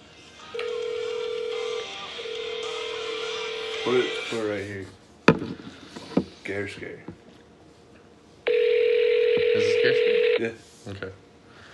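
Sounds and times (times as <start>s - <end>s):
phone call being dialed: 0.6s - 3.8s, 8.5s - 10.4s
speech: 3.8s - 5.0s, 6.5s - 7.2s, 9.8s - 11.2s.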